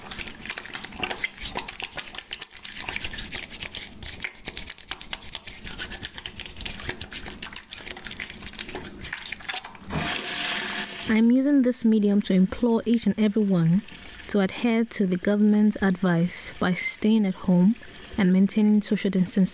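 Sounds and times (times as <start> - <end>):
water running from a tap while washing hands: 0.0 - 11.2, 12.9 - 19.5
speech: 11.1 - 19.5.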